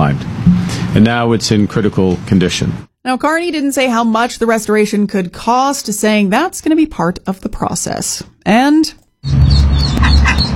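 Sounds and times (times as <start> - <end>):
speech: 1.0 - 10.5
ducklings trapped in a Saskatoon storm sewer peeping: 9.2 - 10.5.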